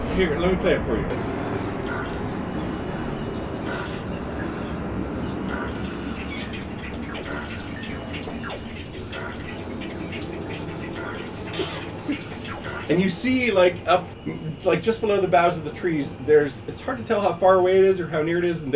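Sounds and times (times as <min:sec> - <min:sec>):
flatulent-sounding airship engine drone: 0:00.0 - 0:17.0
faint chirps: 0:00.0 - 0:18.7
speech: 0:00.2 - 0:01.7, 0:12.9 - 0:18.7.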